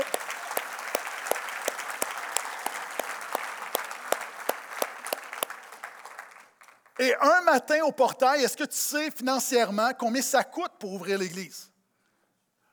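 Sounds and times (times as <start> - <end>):
audience applause: 0.0 - 7.6
speech: 7.0 - 11.7.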